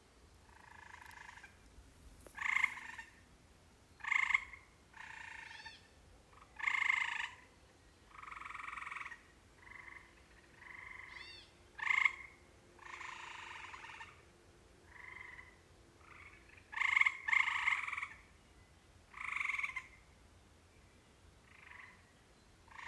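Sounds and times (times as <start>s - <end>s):
repeated short rasping frog croaks around a house: 0.5s - 1.6s, 2.2s - 3.2s, 4.0s - 5.6s, 6.3s - 7.5s, 8.1s - 14.2s, 14.8s - 18.2s, 19.1s - 20.0s, 21.5s - 22.0s, 22.7s - 22.8s.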